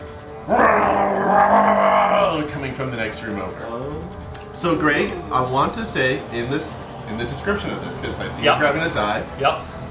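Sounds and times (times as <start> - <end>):
vocal imitation of a dragon roar: 0.4 - 2.6
speech: 0.5 - 9.8.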